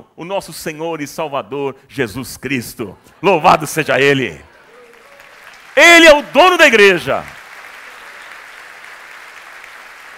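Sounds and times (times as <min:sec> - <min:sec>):
speech: 0:00.2 - 0:04.5, 0:05.8 - 0:07.4
audience applause: 0:04.1 - 0:10.1.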